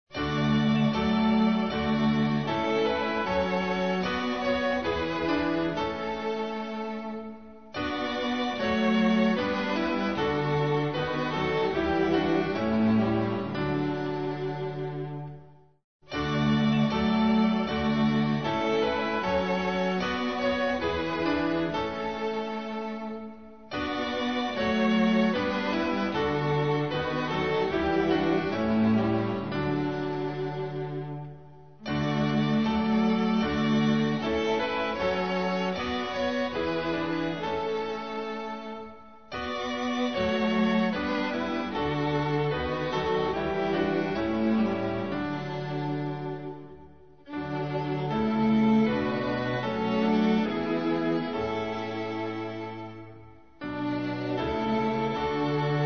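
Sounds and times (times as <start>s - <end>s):
instrumental hymn: 0.0s - 55.8s.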